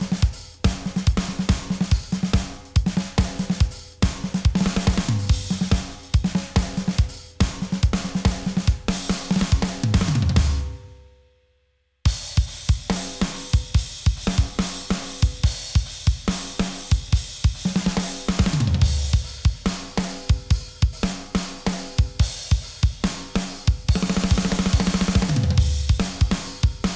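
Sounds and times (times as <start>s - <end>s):
drums: 0.0s - 11.3s, 12.0s - 26.9s.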